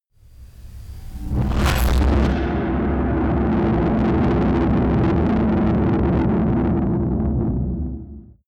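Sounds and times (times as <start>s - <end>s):
distorted explosions: 0.5s - 8.4s.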